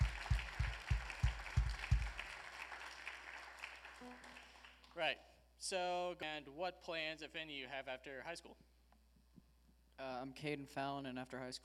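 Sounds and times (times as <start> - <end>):
audience applause: 0.0 - 4.9
speech: 5.0 - 8.6, 10.0 - 11.6.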